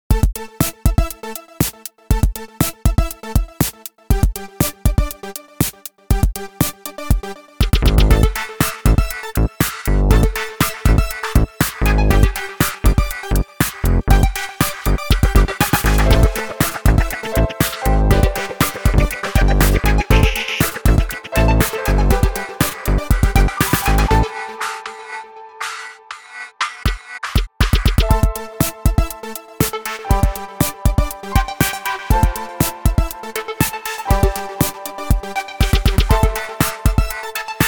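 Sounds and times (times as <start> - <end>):
electronic music: 0.1 - 37.6.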